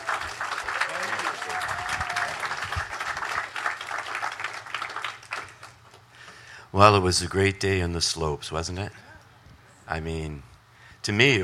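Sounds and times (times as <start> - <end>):
people cheering: 0.0 - 5.8
church audience applause welcoming a pastor: 0.0 - 6.0
speech: 6.8 - 9.1, 9.9 - 11.4.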